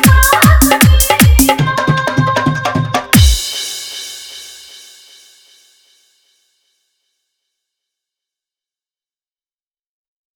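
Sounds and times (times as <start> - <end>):
dholki bass dance mix: 0.0 - 4.6.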